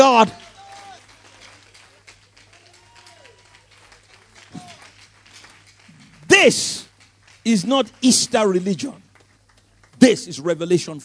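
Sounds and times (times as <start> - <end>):
voices cheering: 0.0 - 1.6, 2.4 - 5.0
audience clapping: 0.0 - 11.0
speech: 0.1 - 0.4, 6.4 - 6.8, 7.4 - 9.0, 10.0 - 11.0.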